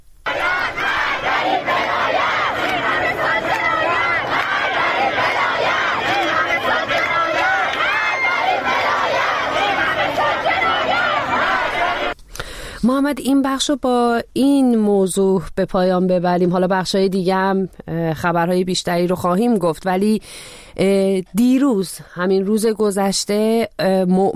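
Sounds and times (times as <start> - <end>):
large crowd of protesters chanting and shouting slogans: 0.3 - 12.2
speech: 12.9 - 24.3.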